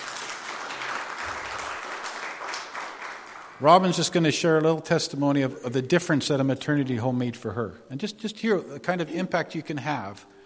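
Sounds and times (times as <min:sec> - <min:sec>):
crowd clapping: 0:00.0 - 0:04.2
speech: 0:03.6 - 0:10.4.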